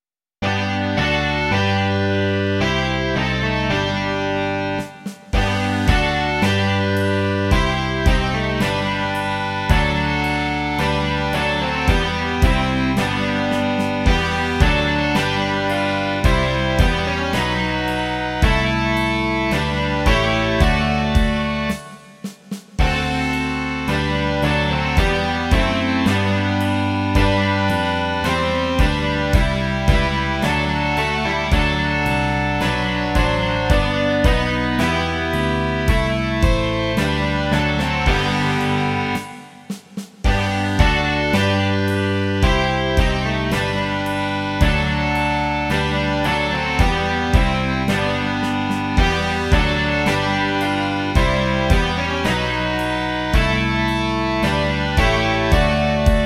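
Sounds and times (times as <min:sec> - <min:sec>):
rock music: 0:00.4 - 0:56.2.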